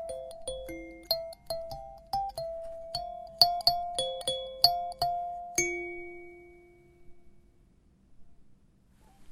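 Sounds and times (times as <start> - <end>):
five-note choir kalimba: 0.0 - 6.9.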